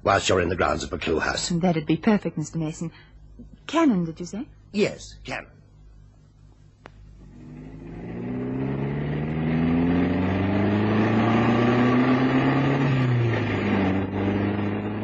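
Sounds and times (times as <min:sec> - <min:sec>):
speech: 0:00.0 - 0:05.6
car engine humming while being driven: 0:06.9 - 0:15.0.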